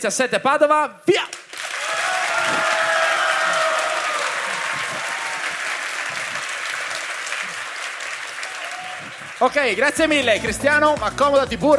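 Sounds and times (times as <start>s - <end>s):
speech: 0.0s - 1.4s, 9.4s - 11.7s
audience applause: 1.4s - 10.2s.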